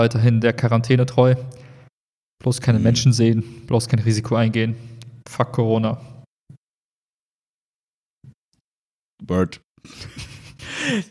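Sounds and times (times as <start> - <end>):
speech: 0.0 - 1.6, 2.4 - 6.1, 9.2 - 11.0
reverb effect on a voice: 2.5 - 4.6.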